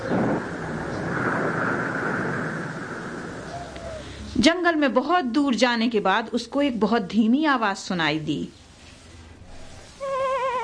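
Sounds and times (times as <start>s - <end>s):
stormy wind roar: 0.0s - 4.4s
light rain: 0.0s - 4.9s
speech: 4.4s - 8.6s.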